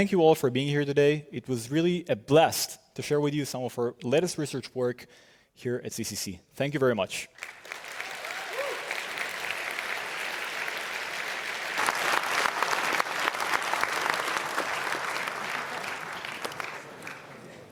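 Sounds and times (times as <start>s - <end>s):
speech: 0.0s - 7.6s
audience applause: 7.4s - 17.7s.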